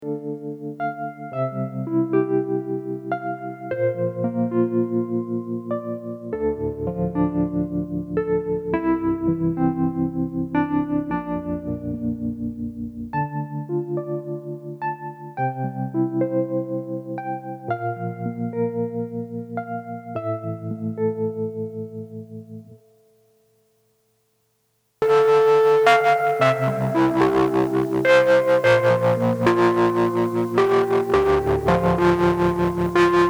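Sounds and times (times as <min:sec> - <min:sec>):
psychedelic Wurly electric piano clean and distorted: 0:00.0 - 0:23.0, 0:25.0 - 0:33.2.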